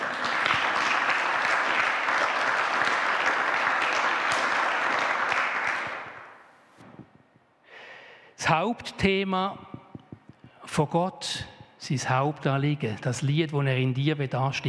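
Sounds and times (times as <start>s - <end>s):
audience applause: 0.0s - 6.4s
speech: 8.5s - 9.6s, 10.8s - 14.6s.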